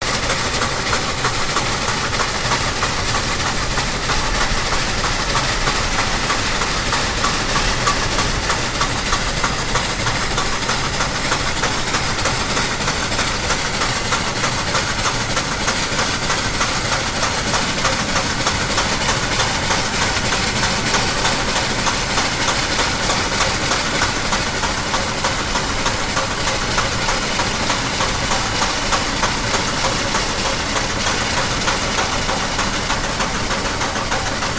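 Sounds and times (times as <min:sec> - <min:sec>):
steam train running steadily: 0:00.0 - 0:34.5.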